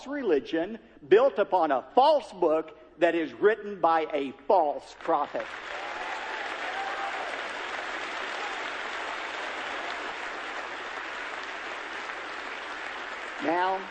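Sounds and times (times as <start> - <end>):
speech: 0.0 - 5.8, 13.4 - 13.8
audience applause: 5.3 - 13.8.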